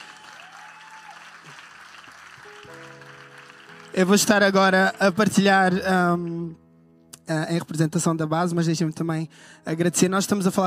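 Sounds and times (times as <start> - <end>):
audience applause: 0.0 - 5.8
speech: 3.9 - 6.6, 7.3 - 10.6.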